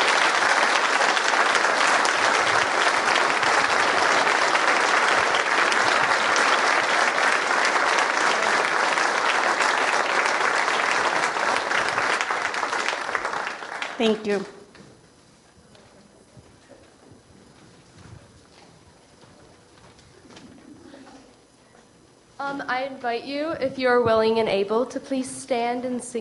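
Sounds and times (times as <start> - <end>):
audience applause: 0.0 - 14.4
speech: 14.0 - 14.6, 23.0 - 26.1.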